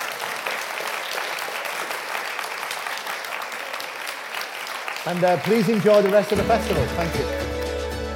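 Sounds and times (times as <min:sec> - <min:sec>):
audience applause: 0:00.0 - 0:08.0
speech: 0:05.0 - 0:07.4.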